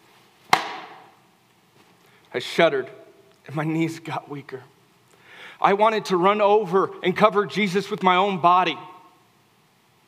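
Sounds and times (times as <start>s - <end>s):
whip striking a body: 0.5s - 1.1s
speech: 2.3s - 4.8s, 5.6s - 8.9s.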